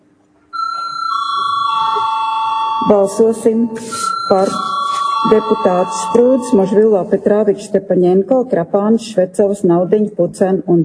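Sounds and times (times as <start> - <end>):
parliament chairman's electric bell calling a vote: 0.6 - 7.2
speech: 2.9 - 10.8.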